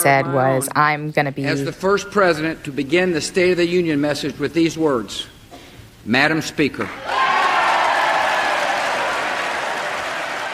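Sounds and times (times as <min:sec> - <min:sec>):
speech: 0:00.0 - 0:05.3, 0:06.0 - 0:07.2
lawmakers standing and applauding: 0:06.9 - 0:10.5.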